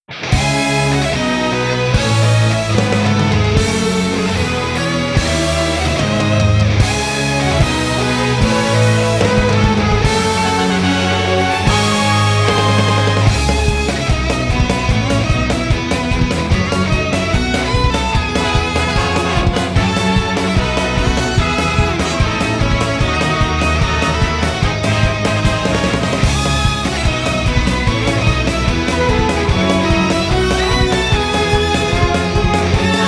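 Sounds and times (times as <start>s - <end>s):
battle background music: 0.1s - 33.0s.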